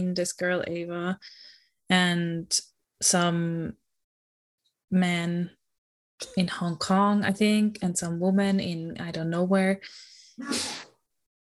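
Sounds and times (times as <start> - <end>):
speech: 0.0 - 3.8, 4.9 - 5.6, 6.2 - 10.8
sneeze: 10.4 - 11.0.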